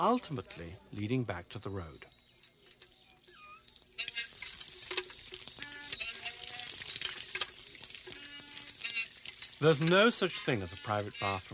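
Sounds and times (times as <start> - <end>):
speech: 0.0 - 2.2, 9.6 - 11.5
hand-cranked water pump clanks and metallic squeaks: 2.2 - 11.5
water splashing and gushing while someone washes under a hand-cranked pump: 3.4 - 11.5.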